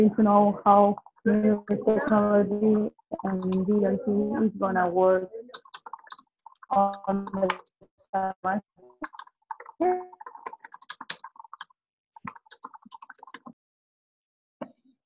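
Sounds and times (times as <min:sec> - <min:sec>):
speech: 0:00.0 - 0:05.7, 0:06.7 - 0:09.2, 0:09.8 - 0:10.2
typing on a computer keyboard during an online call: 0:03.2 - 0:03.9, 0:05.6 - 0:07.7, 0:08.9 - 0:13.5.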